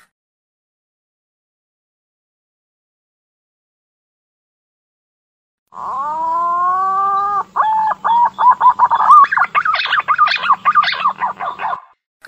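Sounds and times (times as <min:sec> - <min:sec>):
green pigeon calling with bubbling whistled notes: 0:06.0 - 0:11.9.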